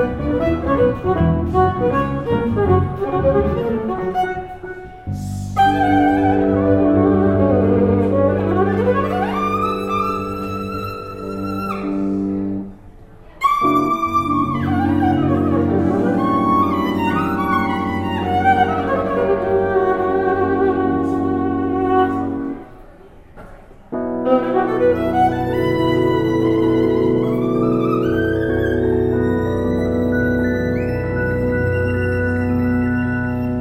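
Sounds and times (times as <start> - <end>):
violin in Spain: 0.0 - 12.7, 13.4 - 22.7, 24.0 - 33.5.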